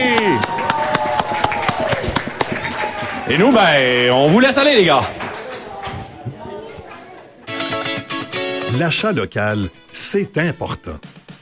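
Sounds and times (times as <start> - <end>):
audience applause: 0.0 - 6.5
speech: 3.3 - 5.2, 8.8 - 11.2.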